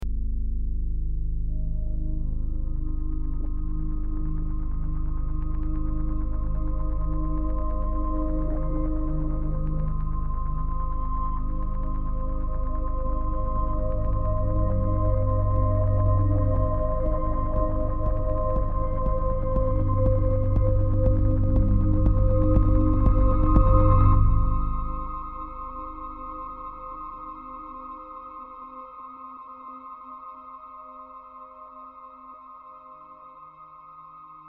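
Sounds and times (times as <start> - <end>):
tense music: 0.1 - 28.1.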